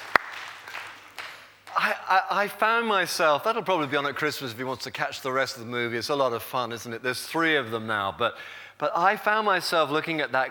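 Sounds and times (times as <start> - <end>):
audience clapping: 0.0 - 1.9
speech: 1.9 - 10.4.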